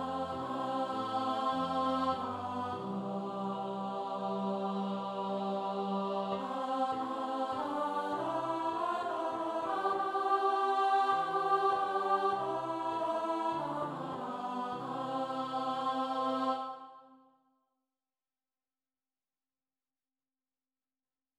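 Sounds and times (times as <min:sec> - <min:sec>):
alto voice singing a carol: 0:00.0 - 0:17.0.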